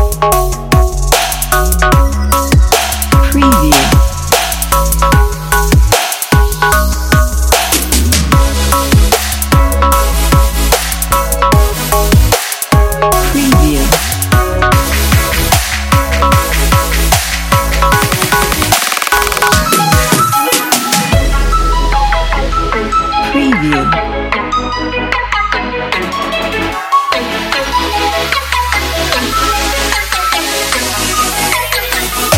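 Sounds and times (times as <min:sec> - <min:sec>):
future bass music: 0:00.0 - 0:32.3.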